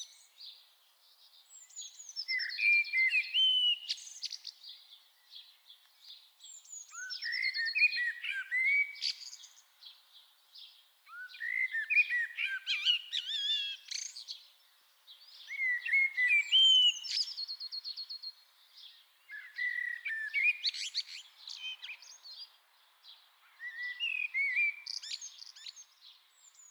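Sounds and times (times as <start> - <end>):
common blackbird singing: 1.5 - 5.4, 6.5 - 9.6, 11.1 - 14.4, 15.2 - 22.5, 23.5 - 26.7.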